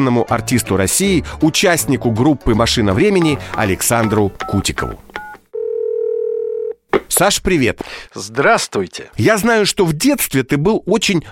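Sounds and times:
speech: 0.0s - 5.2s, 7.0s - 11.3s
two-tone telephone keypad beep: 3.7s - 5.4s
long steady low-pitched telephone tone: 4.0s - 6.8s.

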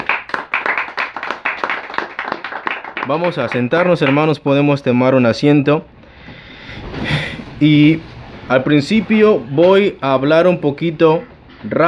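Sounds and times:
audience clapping hands: 0.0s - 4.5s
speech: 3.1s - 6.0s, 7.6s - 11.8s.

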